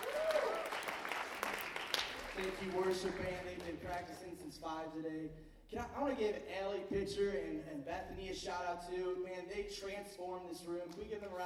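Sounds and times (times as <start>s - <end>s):
crowd applauding: 0.0s - 4.1s
speech: 2.4s - 11.4s.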